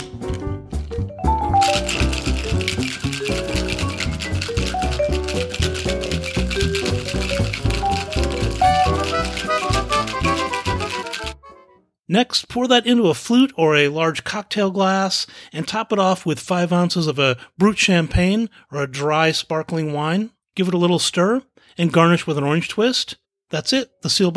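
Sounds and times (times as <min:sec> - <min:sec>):
ice cubes rattling in a cocktail shaker: 0:01.4 - 0:11.4
speech: 0:12.1 - 0:24.3.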